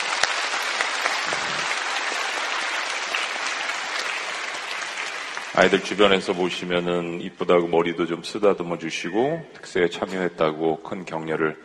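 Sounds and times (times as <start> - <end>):
audience applauding: 0.0 - 6.5
speech: 5.6 - 11.6.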